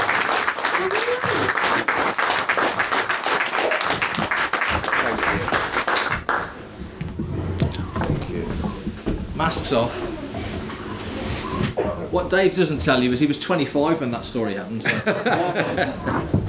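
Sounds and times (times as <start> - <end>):
crowd murmuring: 0.0 - 2.0, 3.6 - 16.4
audience applause: 0.0 - 6.8
speech: 9.7 - 10.1, 12.1 - 16.4
laughter: 14.8 - 16.4.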